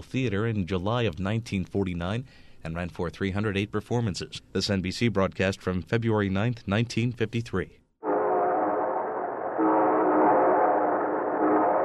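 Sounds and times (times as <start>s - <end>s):
speech: 0.0s - 7.8s
train whistle sound effect opening the Railroad Hour radio show: 8.0s - 11.8s.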